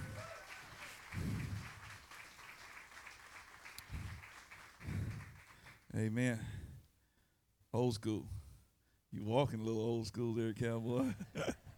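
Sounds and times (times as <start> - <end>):
crowd audience applause: 0.0 - 5.9
speech: 6.0 - 6.6, 7.7 - 8.4, 9.1 - 11.6.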